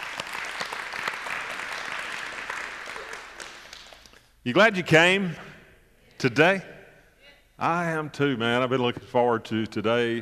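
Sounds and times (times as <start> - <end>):
church audience clapping and cheering during a service: 0.0 - 4.4
speech: 4.4 - 5.5, 6.2 - 6.7, 7.6 - 10.2.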